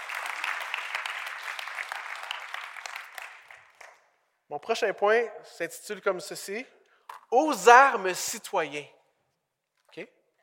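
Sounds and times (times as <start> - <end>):
audience applauding: 0.0 - 4.0
speech: 4.5 - 9.0, 9.9 - 10.2.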